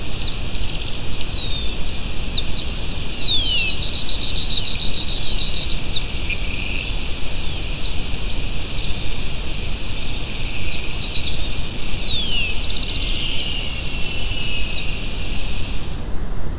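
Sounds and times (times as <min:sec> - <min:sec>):
bird calls: 0:00.1 - 0:09.2, 0:09.9 - 0:15.8
steady low noise: 0:05.7 - 0:16.5.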